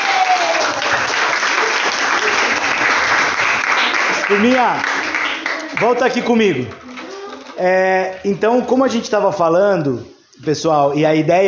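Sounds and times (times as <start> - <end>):
audience applauding: 0.0 - 6.6
speech: 4.3 - 5.0, 5.8 - 6.9, 7.6 - 11.4.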